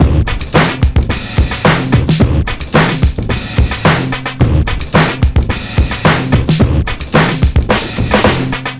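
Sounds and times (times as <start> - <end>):
break beat at 109 BPM: 0.0 - 8.7.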